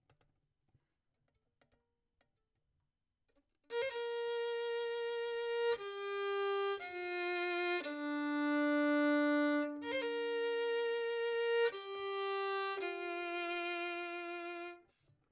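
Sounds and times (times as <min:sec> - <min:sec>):
violin: 0:03.7 - 0:15.0.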